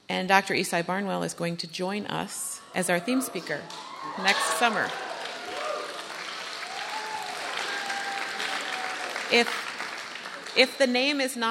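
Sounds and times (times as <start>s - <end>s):
speech: 0.1s - 5.1s, 9.3s - 9.6s, 10.6s - 11.4s
conference audience cheering and applauding: 3.1s - 10.9s.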